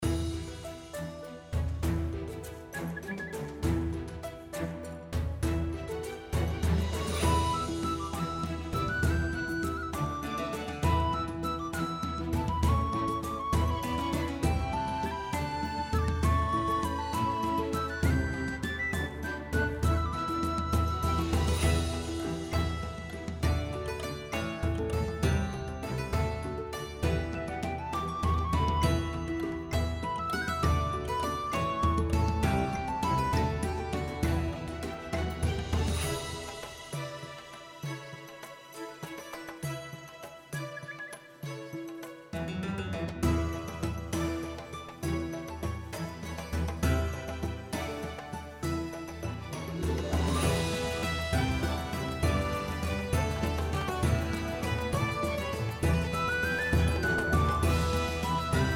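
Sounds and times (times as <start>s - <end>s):
ancient native battle music: 0.0s - 39.0s, 42.7s - 58.7s.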